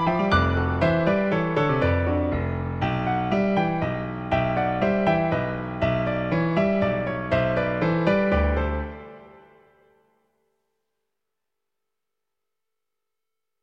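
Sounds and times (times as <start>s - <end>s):
piano sonata movement trio: 0.0s - 10.1s.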